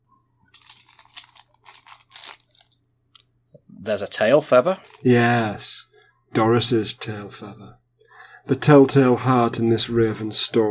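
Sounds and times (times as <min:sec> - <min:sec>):
sand sheet being lifted, crinkling: 0:00.5 - 0:02.8, 0:04.8 - 0:05.1
speech: 0:03.8 - 0:05.7, 0:06.4 - 0:07.8, 0:08.5 - 0:10.6.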